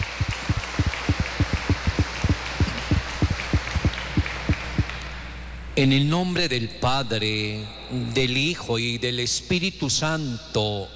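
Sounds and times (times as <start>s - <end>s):
crowd applauding loudly: 0.0s - 5.3s
speech: 5.8s - 10.9s.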